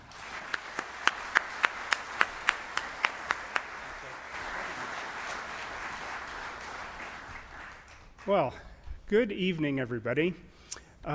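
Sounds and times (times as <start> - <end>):
audience applause: 0.0 - 8.5
speech: 8.3 - 11.1.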